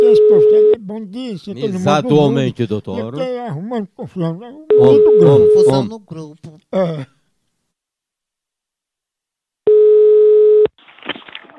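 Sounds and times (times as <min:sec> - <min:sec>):
buzzing telephone line tone while placing a call: 0:00.0 - 0:00.8, 0:04.7 - 0:05.8, 0:09.7 - 0:10.7
speech: 0:01.0 - 0:07.2.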